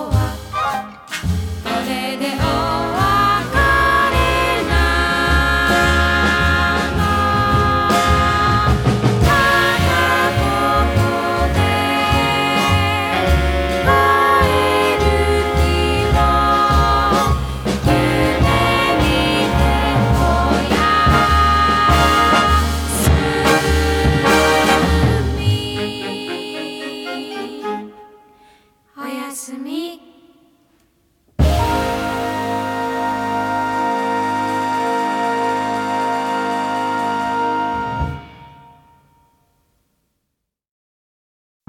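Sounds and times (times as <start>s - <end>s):
gentle forest jazz: 0.0s - 26.0s, 31.4s - 38.7s.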